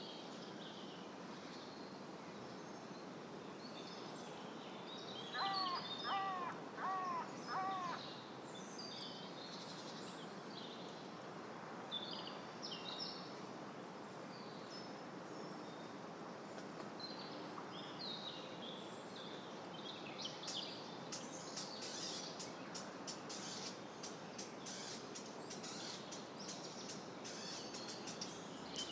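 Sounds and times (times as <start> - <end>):
birds: 0.0 - 13.4, 14.3 - 28.8
wind: 0.0 - 28.8.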